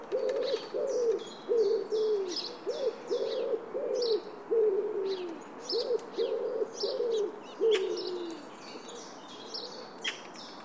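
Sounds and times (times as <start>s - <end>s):
bird repeating low hollow hooting notes: 0.1s - 8.4s.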